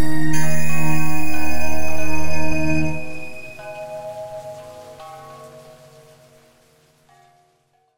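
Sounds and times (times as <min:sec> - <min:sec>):
monstrous horror synth: 0:00.0 - 0:04.0.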